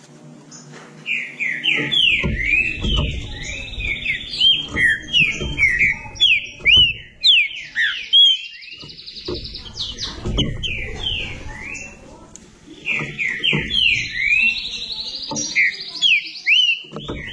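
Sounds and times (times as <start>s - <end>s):
Green-winged saltator whistled song: 1.0s - 12.0s, 12.7s - 17.3s
low rumbling background noise: 1.8s - 15.5s
low thumping noise: 1.8s - 15.6s, 16.9s - 17.3s.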